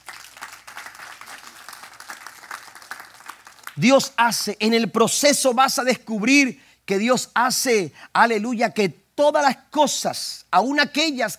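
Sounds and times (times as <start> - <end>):
audience applause: 0.0 - 3.8
speech: 3.8 - 11.3.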